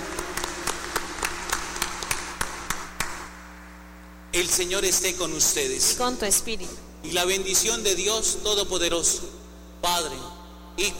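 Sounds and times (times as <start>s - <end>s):
audience applauding: 0.0s - 3.3s
speech: 4.4s - 10.9s.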